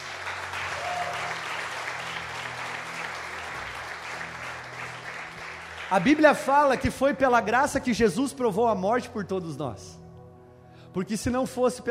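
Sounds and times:
audience applauding: 0.0 - 7.0
speech: 5.9 - 10.0, 10.9 - 11.8.

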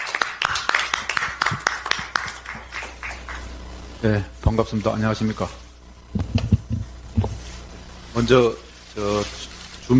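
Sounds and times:
audience applause: 0.0 - 3.6
speech: 4.0 - 6.4, 8.2 - 9.9.

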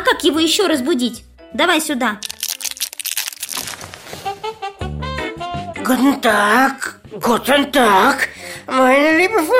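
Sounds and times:
speech: 0.2 - 2.3, 5.9 - 9.5
candy wrapper crinkling: 2.2 - 4.2.

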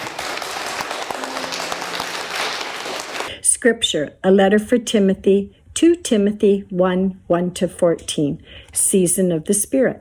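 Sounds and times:
audience applause: 0.0 - 3.3
speech: 3.6 - 10.0.

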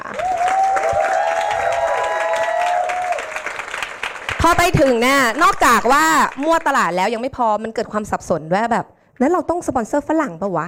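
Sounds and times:
audience applause: 0.0 - 6.8
speech: 4.4 - 10.6.

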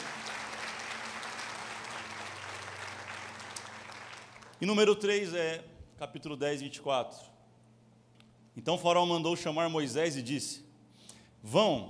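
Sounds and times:
audience clapping: 0.0 - 5.0
low steady hum: 0.0 - 11.8
speech: 4.6 - 7.3, 8.6 - 10.7, 11.4 - 11.8.

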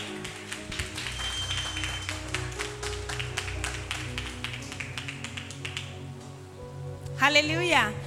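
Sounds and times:
church congregation clapping for a pastor during a live service: 0.0 - 6.3
speech: 7.2 - 8.0.

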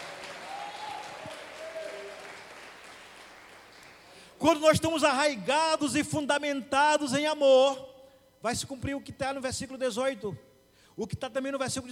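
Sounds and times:
audience applauding: 0.0 - 4.1
speech: 4.4 - 11.8.

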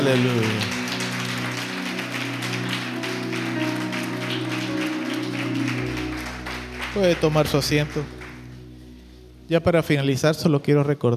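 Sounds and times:
speech: 0.0 - 0.8, 7.0 - 8.2, 9.5 - 11.1
audience applause: 0.0 - 8.6.

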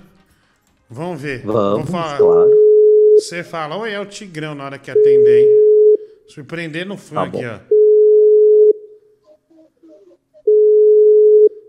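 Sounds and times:
speech: 0.9 - 2.6, 3.2 - 5.6, 6.3 - 7.7
phone ringback tone on an outgoing call: 2.2 - 3.2, 7.7 - 8.8, 10.5 - 11.6.

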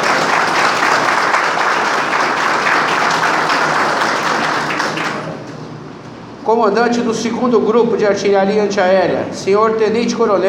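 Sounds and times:
audience applause: 0.0 - 5.6
speech: 6.5 - 10.4.

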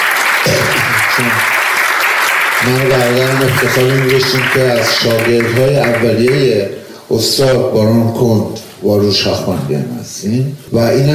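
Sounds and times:
audience applause in honour of a musician: 0.0 - 6.6
speech: 1.2 - 1.5, 2.6 - 11.1.

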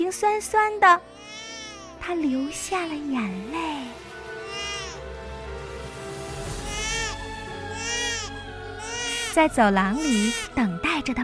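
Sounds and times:
speech: 0.1 - 1.4, 2.0 - 4.1, 9.4 - 11.2
newborn baby crying: 1.0 - 2.0, 4.3 - 5.1, 6.6 - 10.6.

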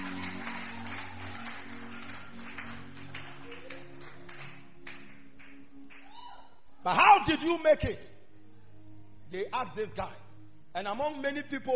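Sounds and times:
people clapping: 0.0 - 6.5
speech: 6.8 - 8.2, 9.3 - 10.2, 10.8 - 11.7.

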